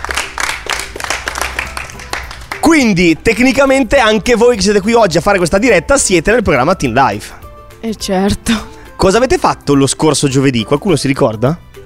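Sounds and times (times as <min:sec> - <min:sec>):
young audience applause at a live radio show: 0:00.0 - 0:02.9
speech: 0:02.7 - 0:11.6.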